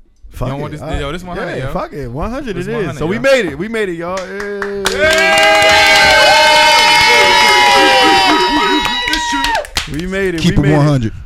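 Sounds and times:
speech: 0:00.4 - 0:05.9, 0:10.0 - 0:11.2
live studio audience cheering at a 100th episode taping: 0:04.6 - 0:10.5.

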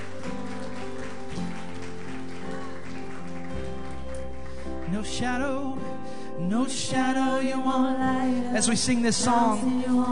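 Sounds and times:
congregation hand clap: 0:00.0 - 0:05.7
speech: 0:05.0 - 0:10.1.

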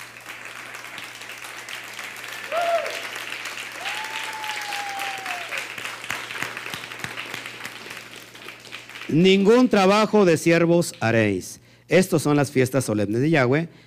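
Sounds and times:
loud audience applause: 0:00.0 - 0:09.4
speech: 0:09.1 - 0:13.8.

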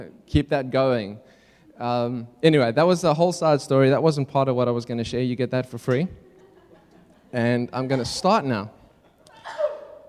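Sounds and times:
speech: 0:00.0 - 0:06.3, 0:07.3 - 0:08.8
laughter: 0:06.2 - 0:10.0
sneeze: 0:09.3 - 0:10.0.

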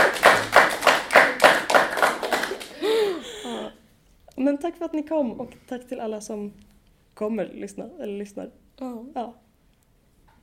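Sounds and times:
audience applause: 0:00.0 - 0:03.1
speech: 0:04.7 - 0:09.4.

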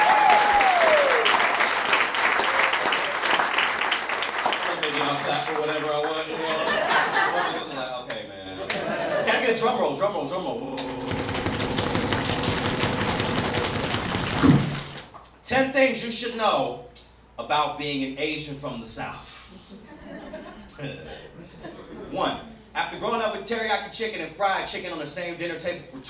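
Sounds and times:
audience applause: 0:00.0 - 0:06.4, 0:10.8 - 0:15.1
laughter: 0:06.0 - 0:09.7, 0:19.6 - 0:22.1
speech: 0:09.5 - 0:10.7, 0:15.5 - 0:16.8, 0:17.5 - 0:19.3, 0:22.2 - 0:26.0.

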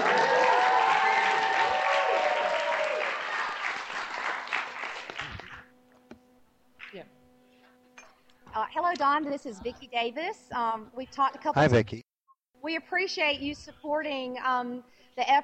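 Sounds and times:
crowd saying hi: 0:00.0 - 0:05.2
audience of about 150 clapping: 0:00.0 - 0:05.7
speech: 0:08.7 - 0:12.0, 0:12.6 - 0:15.4.

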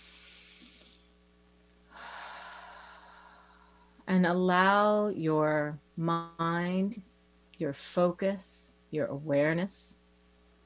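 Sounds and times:
slow deep breath in and out: 0:01.9 - 0:04.0
speech: 0:04.1 - 0:10.0.

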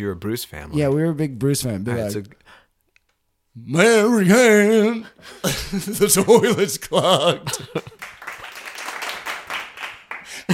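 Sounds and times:
speech: 0:00.0 - 0:02.5, 0:03.6 - 0:08.1
laughter: 0:05.2 - 0:08.6, 0:10.3 - 0:10.5
canned audience-reaction clapping and crowd noise effect: 0:08.0 - 0:10.5.

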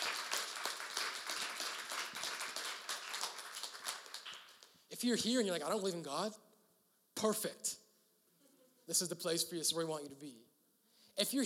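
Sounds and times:
audience clapping hands: 0:00.0 - 0:04.8
speech: 0:05.0 - 0:06.5, 0:07.2 - 0:07.8, 0:08.9 - 0:10.5, 0:11.2 - 0:11.4.

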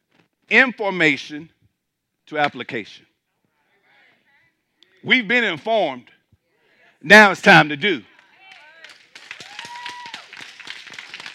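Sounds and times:
speech: 0:00.5 - 0:01.6, 0:02.3 - 0:03.1, 0:05.0 - 0:06.2, 0:07.0 - 0:08.1
audience clapping: 0:08.1 - 0:11.3.

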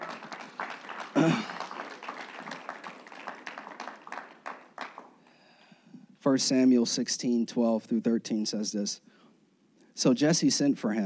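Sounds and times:
audience clapping hands: 0:00.0 - 0:05.2
speech: 0:01.2 - 0:01.5, 0:06.3 - 0:09.1, 0:10.0 - 0:11.0.

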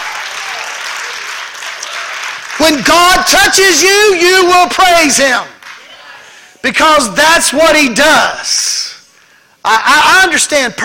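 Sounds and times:
audience hand clapping: 0:00.0 - 0:02.9, 0:05.5 - 0:06.0
speech: 0:02.6 - 0:05.5, 0:06.6 - 0:08.8, 0:09.6 - 0:10.8.

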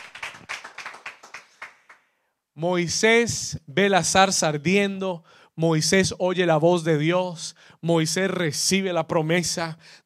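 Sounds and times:
audience hand clapping: 0:00.0 - 0:02.1
speech: 0:02.6 - 0:10.0.

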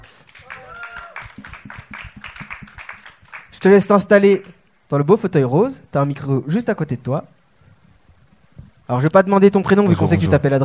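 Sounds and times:
audience applause: 0:00.0 - 0:03.7
speech: 0:03.6 - 0:07.4, 0:08.9 - 0:10.6.

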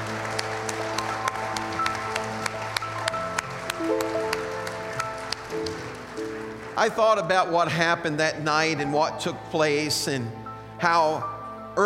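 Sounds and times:
audience hand clapping: 0:00.0 - 0:07.9
speech: 0:06.8 - 0:11.8.

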